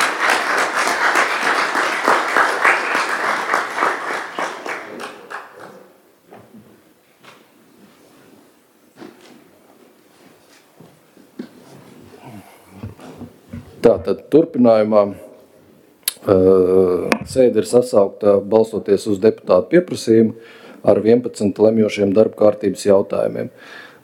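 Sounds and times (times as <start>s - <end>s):
group applause: 0.0s - 6.0s
speech: 14.0s - 15.2s, 16.2s - 23.9s.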